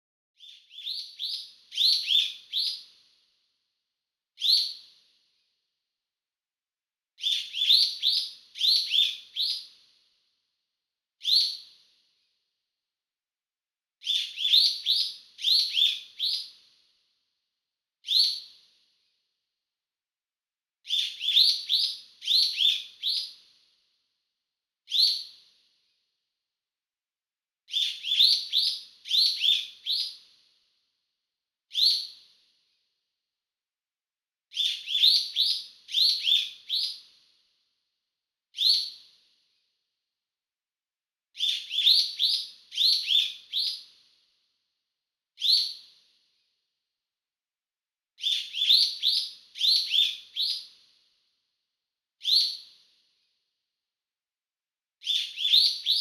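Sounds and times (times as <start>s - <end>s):
bird: 0.4s - 3.2s, 4.4s - 5.2s, 7.2s - 10.0s, 11.2s - 12.0s, 14.0s - 16.9s, 18.0s - 18.8s, 20.8s - 23.7s, 24.9s - 25.7s, 27.7s - 30.5s, 31.7s - 32.5s, 34.5s - 37.3s, 38.5s - 39.4s, 41.4s - 44.1s, 45.4s - 46.2s, 48.2s - 51.0s, 52.2s - 53.0s, 55.0s - 55.9s.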